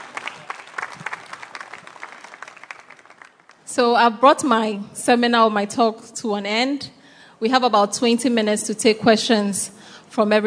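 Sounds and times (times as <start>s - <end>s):
audience applause: 0.0s - 3.7s
speech: 3.7s - 10.4s.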